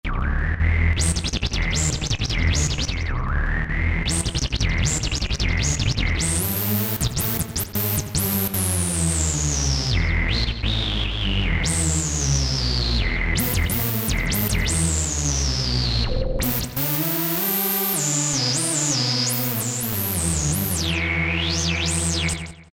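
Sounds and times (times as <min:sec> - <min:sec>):
Roland JP-8000 synthesizer: 0:00.1 - 0:22.7.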